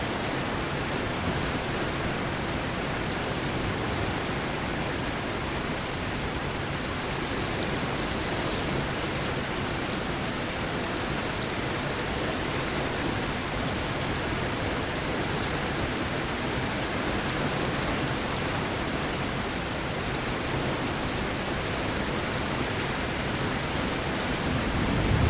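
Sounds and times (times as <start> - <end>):
rain heard indoors through an open window: 0.0 - 25.2
low thunder rumbles: 24.4 - 25.2.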